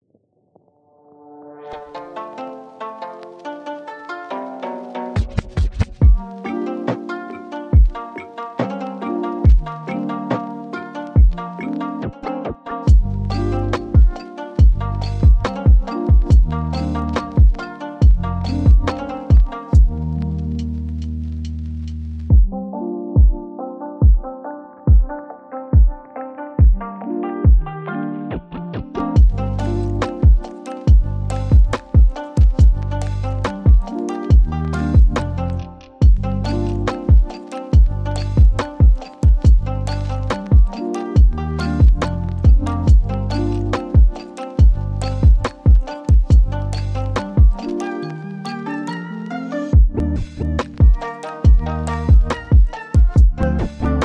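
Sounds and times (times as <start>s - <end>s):
lo-fi hip hop beat: 1.6s - 54.0s.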